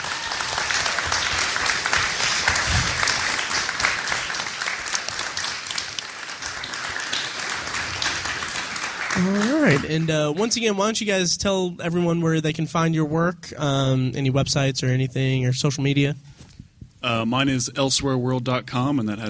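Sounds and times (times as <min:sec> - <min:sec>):
audience applause for filmmakers and talent: 0:00.0 - 0:11.0
speech: 0:09.2 - 0:16.3, 0:17.0 - 0:19.2.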